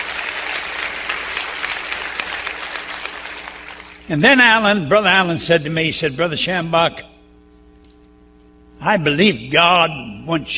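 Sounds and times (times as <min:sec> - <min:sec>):
audience clapping hands: 0:00.0 - 0:04.1
speech: 0:04.1 - 0:07.1, 0:08.8 - 0:10.5.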